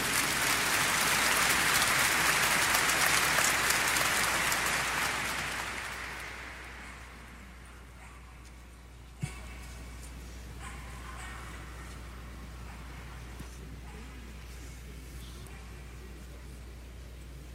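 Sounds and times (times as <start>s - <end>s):
audience applauding: 0.0s - 7.9s.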